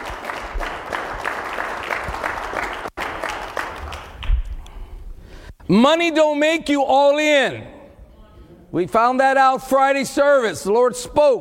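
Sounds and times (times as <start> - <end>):
audience applauding: 0.0 - 4.5
speech: 5.7 - 7.8, 8.7 - 11.3.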